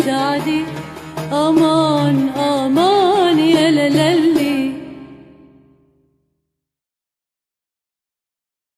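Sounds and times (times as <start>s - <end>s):
Andalusian Arabic muwashshah song: 0.0s - 5.8s.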